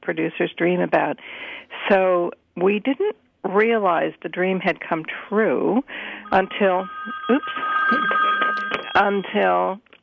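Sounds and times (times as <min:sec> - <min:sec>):
speech: 0:00.1 - 0:08.3, 0:09.0 - 0:09.9
steady tone: 0:06.0 - 0:09.4
telephone ringing: 0:06.0 - 0:09.7.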